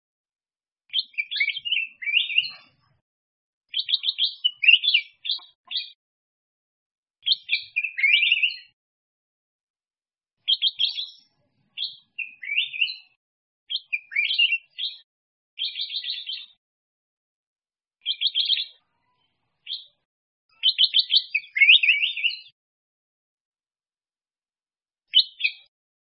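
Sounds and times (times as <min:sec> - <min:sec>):
black-crested bulbul singing: 0:00.9 - 0:02.6, 0:03.7 - 0:06.0, 0:07.2 - 0:08.8, 0:10.4 - 0:16.6, 0:19.7 - 0:22.6, 0:25.1 - 0:25.7.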